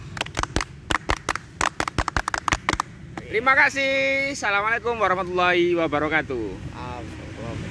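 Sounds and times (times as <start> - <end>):
scout rhythmic clapping: 0.0 - 3.3
speech: 3.3 - 7.2.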